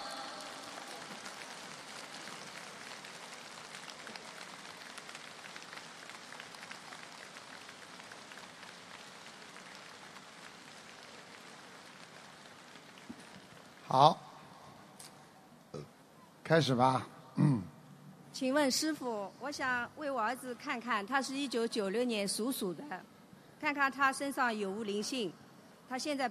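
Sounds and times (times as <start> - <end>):
audience applause: 0.0 - 13.9
speech: 13.9 - 14.2, 16.5 - 17.1, 18.4 - 26.3.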